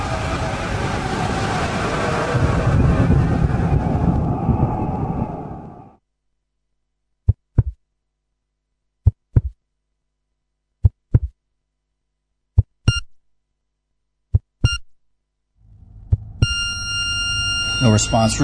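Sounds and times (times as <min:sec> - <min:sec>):
low rumbling noise: 0:00.0 - 0:06.0, 0:15.6 - 0:18.4
double-thump heartbeats: 0:07.3 - 0:07.8, 0:09.0 - 0:09.6, 0:10.8 - 0:11.4, 0:12.5 - 0:13.0, 0:14.3 - 0:14.8, 0:16.1 - 0:16.5
electronic monitor beeps: 0:12.8 - 0:13.2, 0:14.6 - 0:14.9, 0:16.2 - 0:18.4
steady high tone: 0:16.4 - 0:18.4
speech: 0:17.8 - 0:18.4.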